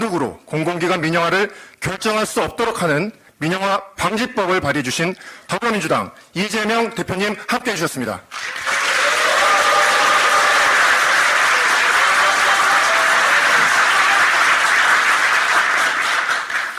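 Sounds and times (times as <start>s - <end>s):
speech: 0.0s - 8.6s
crowd applauding: 8.3s - 16.7s.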